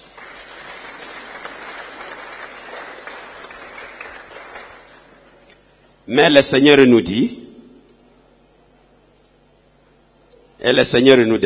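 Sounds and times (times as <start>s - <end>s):
audience applause: 0.0s - 5.3s
speech: 6.1s - 7.4s, 10.7s - 11.4s.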